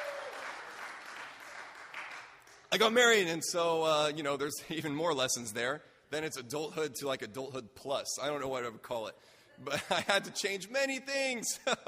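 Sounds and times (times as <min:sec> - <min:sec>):
audience applause: 0:00.0 - 0:02.4
speech: 0:02.7 - 0:11.8.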